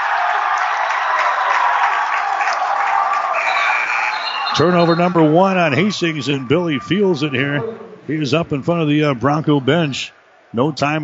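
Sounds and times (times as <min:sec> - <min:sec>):
applause: 0:00.0 - 0:04.2
basketball arena crowd cheering: 0:00.0 - 0:11.0
speech: 0:04.6 - 0:11.0.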